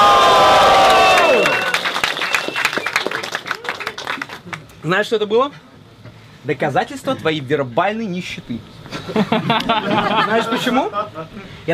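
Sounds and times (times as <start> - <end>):
live crowd cheering and shouting: 0.0 - 2.0
scattered claps and whoops: 0.0 - 4.6
speech: 4.9 - 5.7, 6.4 - 11.7
laughter: 8.9 - 11.5.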